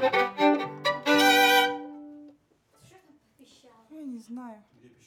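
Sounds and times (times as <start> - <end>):
viola C note: 0.1 - 2.3.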